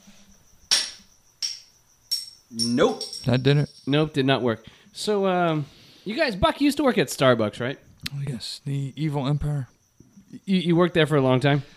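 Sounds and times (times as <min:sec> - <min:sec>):
crickets chirping: 0:00.0 - 0:11.7
speech: 0:02.5 - 0:09.7, 0:10.3 - 0:11.7.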